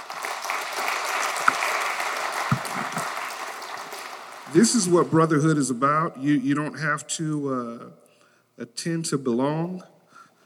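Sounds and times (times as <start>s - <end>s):
audience clapping: 0.0s - 5.2s
speech: 4.5s - 8.0s, 8.6s - 9.9s.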